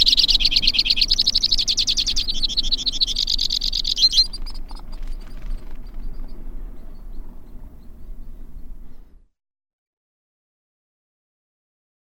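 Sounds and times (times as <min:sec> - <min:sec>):
white-winged crossbill delivering rapid high rattling trills: 0:00.0 - 0:09.1.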